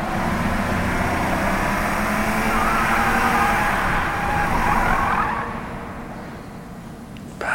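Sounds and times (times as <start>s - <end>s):
car driving on a highway: 0.0s - 7.4s.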